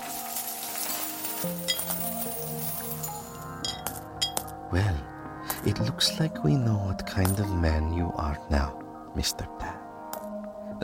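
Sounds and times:
gold coins forming a pile on worn carpet: 0:00.0 - 0:04.0
speech: 0:01.4 - 0:02.4, 0:04.7 - 0:09.8.

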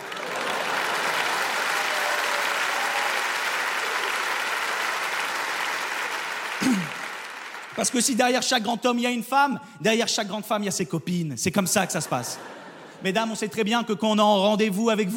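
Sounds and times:
audience applause: 0:00.0 - 0:08.2
speech: 0:07.8 - 0:15.1
laughter: 0:11.8 - 0:13.4.

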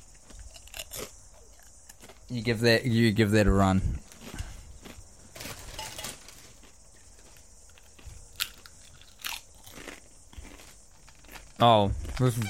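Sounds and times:
crunchy chewing and biting of food: 0:00.0 - 0:03.0, 0:03.8 - 0:12.4
speech: 0:02.3 - 0:04.0, 0:11.6 - 0:12.4.

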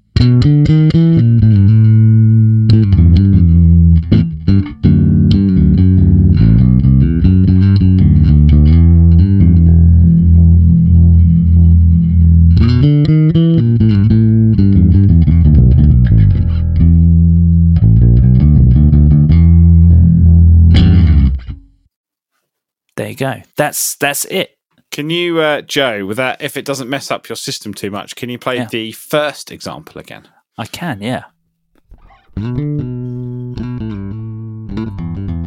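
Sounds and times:
bass guitar playing a busy line through effects with fizzy distortion: 0:00.0 - 0:21.8, 0:31.8 - 0:35.4
speech: 0:23.2 - 0:31.3, 0:32.4 - 0:33.0.

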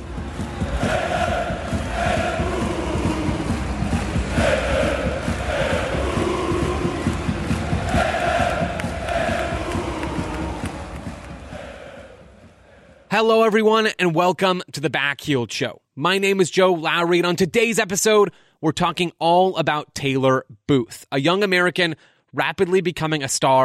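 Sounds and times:
football fans chanting after a home win: 0:00.0 - 0:13.1
speech: 0:13.2 - 0:23.6.

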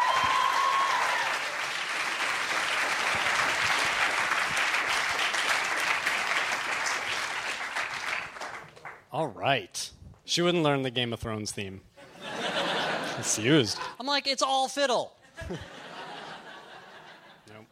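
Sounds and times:
audience applause: 0:00.0 - 0:09.0
speech: 0:09.2 - 0:11.9, 0:13.2 - 0:15.8
laughter: 0:12.0 - 0:14.0, 0:15.2 - 0:17.7.

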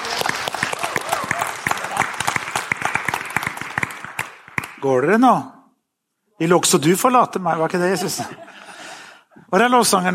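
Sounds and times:
audience applause: 0:00.0 - 0:04.8
speech: 0:04.8 - 0:05.6, 0:06.4 - 0:08.7, 0:09.5 - 0:10.1
laughter: 0:07.6 - 0:09.1.

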